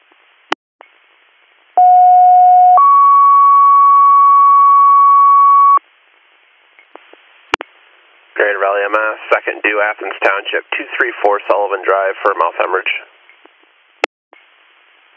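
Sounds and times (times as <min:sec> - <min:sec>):
loud two-tone dispatch alert tones: 0:01.8 - 0:05.8
radio clicks and static bursts: 0:08.4 - 0:13.5
speech: 0:08.5 - 0:13.1.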